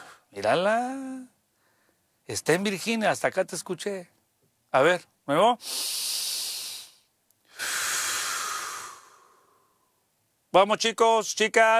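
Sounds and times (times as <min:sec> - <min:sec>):
deep breath: 0:00.0 - 0:00.3, 0:01.5 - 0:02.1, 0:05.6 - 0:10.0
speech: 0:00.4 - 0:01.3, 0:02.3 - 0:06.3, 0:10.6 - 0:11.7.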